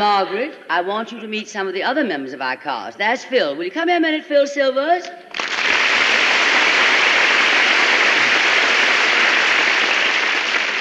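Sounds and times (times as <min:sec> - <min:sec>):
speech: 0:00.0 - 0:05.4
studio audience clapping: 0:05.3 - 0:10.7.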